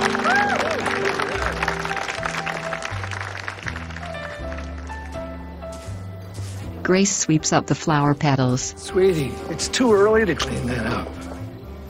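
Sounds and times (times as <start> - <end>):
two people cheering: 0.0 - 1.6
applause: 0.0 - 5.2
speech: 6.9 - 11.2.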